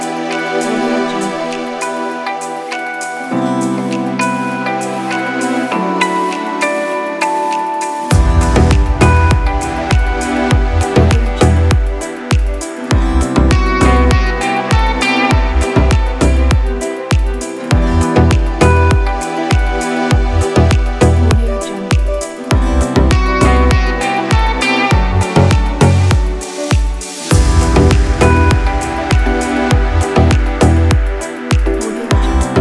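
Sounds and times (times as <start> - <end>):
ambient corporate music: 0.0 - 32.5.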